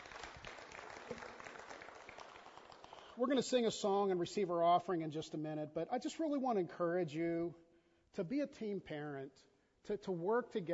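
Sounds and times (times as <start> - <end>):
round of applause: 0.0 - 3.6
speech: 3.2 - 7.6, 8.2 - 10.7.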